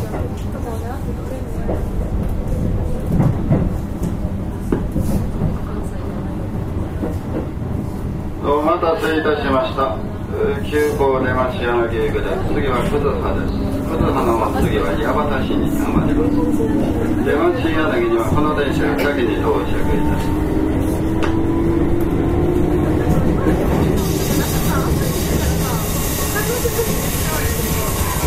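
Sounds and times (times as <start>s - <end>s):
Keihan 6000 series express train running rumble: 0.0s - 28.2s
faint voices: 0.0s - 28.2s.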